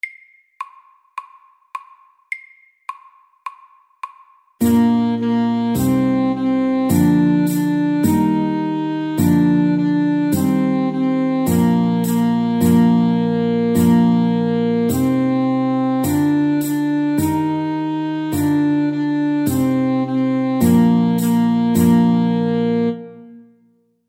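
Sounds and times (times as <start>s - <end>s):
folk tune at medium tempo 105: 4.6s - 23.6s.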